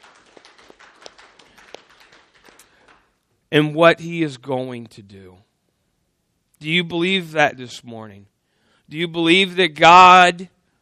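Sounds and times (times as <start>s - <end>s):
church congregation faint applause: 0.0s - 3.1s
speech: 3.5s - 5.5s, 6.6s - 8.3s, 8.9s - 10.5s.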